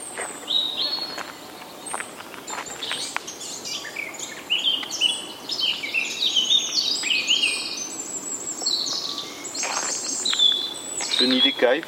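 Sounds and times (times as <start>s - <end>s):
passerine birds: 0.0s - 11.8s.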